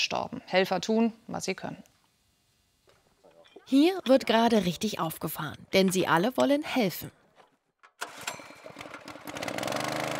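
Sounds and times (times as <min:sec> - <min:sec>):
speech: 0:00.0 - 0:01.9, 0:03.7 - 0:07.2
engine-driven motor water pump running: 0:08.0 - 0:10.1.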